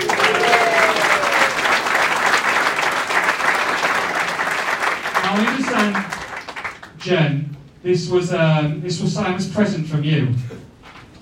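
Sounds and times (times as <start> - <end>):
audience applause for anniversary couple: 0.0 - 6.9
speech: 7.0 - 10.7.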